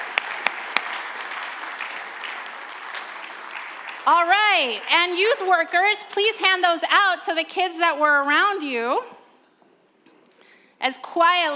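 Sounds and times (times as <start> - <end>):
audience round of applause: 0.0 - 5.9
speech: 4.1 - 9.2, 10.8 - 11.5.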